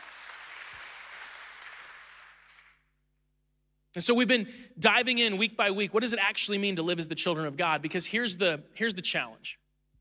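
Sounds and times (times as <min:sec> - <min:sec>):
audience clapping: 0:00.0 - 0:03.0
speech: 0:03.9 - 0:09.6.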